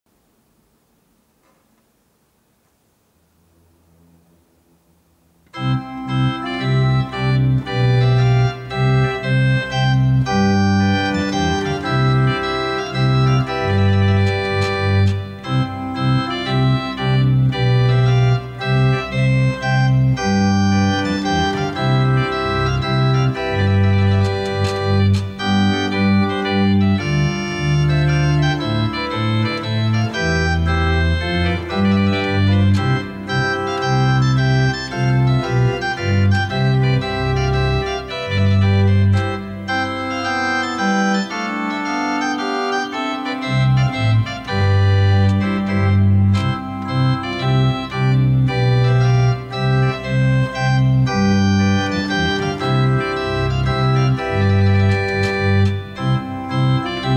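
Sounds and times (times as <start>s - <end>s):
minuet for trumpets transcribed for organ: 3.0s - 57.1s.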